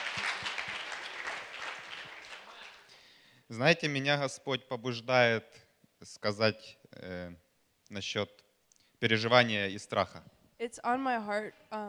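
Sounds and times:
audience clapping hands: 0:00.0 - 0:03.0
speech: 0:03.5 - 0:08.4, 0:09.0 - 0:11.8.

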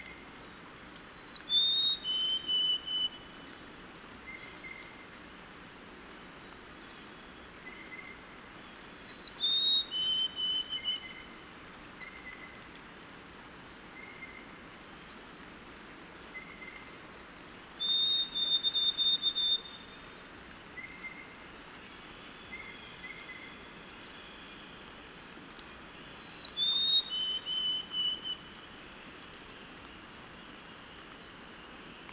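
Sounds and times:
white-throated sparrow whistling song: 0:00.8 - 0:03.1, 0:08.7 - 0:11.0, 0:16.6 - 0:19.9, 0:25.9 - 0:28.4.

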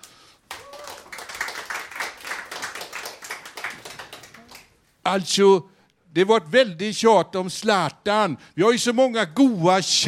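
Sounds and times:
applause: 0:00.0 - 0:04.8
speech: 0:05.0 - 0:10.0.

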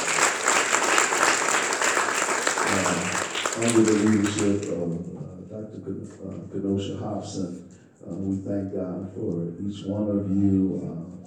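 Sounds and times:
church audience applause: 0:00.0 - 0:04.8
speech: 0:03.6 - 0:11.2.

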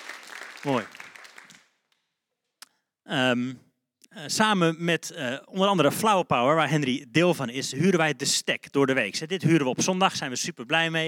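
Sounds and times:
audience applause: 0:00.0 - 0:01.8
lone sharp claps: 0:00.0 - 0:02.0
speech: 0:00.6 - 0:01.0, 0:03.1 - 0:11.0.

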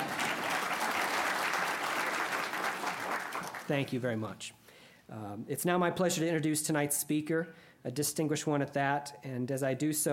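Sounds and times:
audience applause: 0:00.0 - 0:03.7
speech: 0:03.7 - 0:10.1.

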